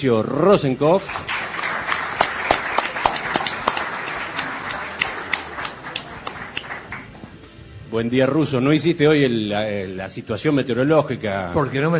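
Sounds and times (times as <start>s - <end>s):
speech: 0.0s - 1.3s, 7.9s - 11.9s
fervent applause: 1.0s - 7.3s.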